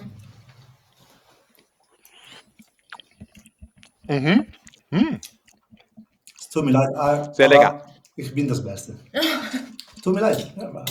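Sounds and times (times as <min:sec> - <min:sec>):
chewing a bite of a dish with a crust: 0:00.1 - 0:06.5, 0:09.6 - 0:10.8
speech: 0:04.1 - 0:05.3, 0:06.6 - 0:09.3, 0:10.0 - 0:10.8.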